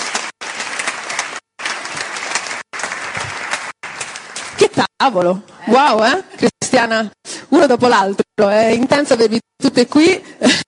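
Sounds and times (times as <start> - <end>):
audience applause: 0.0 - 4.6
speech: 4.7 - 10.6.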